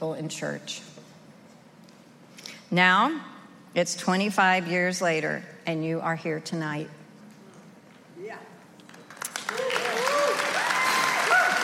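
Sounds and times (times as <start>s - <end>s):
speech: 0.0s - 1.0s, 2.7s - 7.0s
audience applause: 8.9s - 11.6s.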